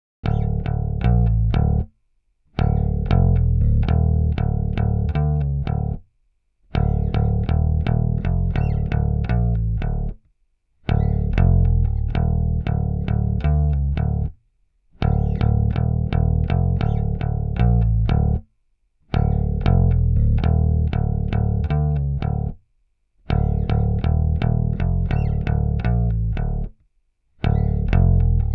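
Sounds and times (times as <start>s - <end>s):
bass: 0.2s - 28.5s.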